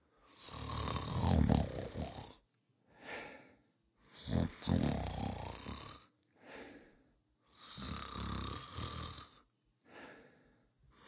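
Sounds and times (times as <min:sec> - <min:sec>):
person snoring: 0:00.3 - 0:02.4, 0:04.2 - 0:06.1, 0:07.5 - 0:09.4.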